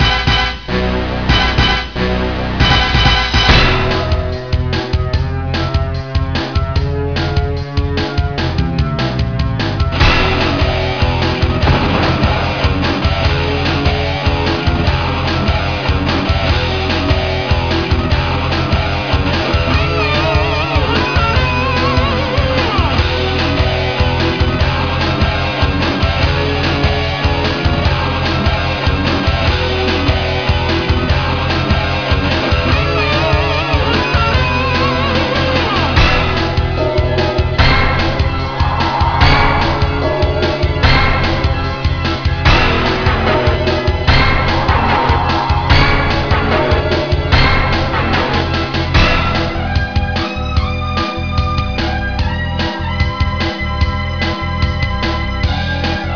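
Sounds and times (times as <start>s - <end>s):
theme music: 0.0s - 56.1s.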